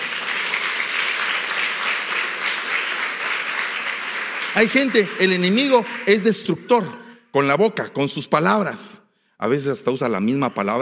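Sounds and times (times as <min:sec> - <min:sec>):
crowd applause: 0:00.0 - 0:06.4
speech: 0:04.6 - 0:10.8.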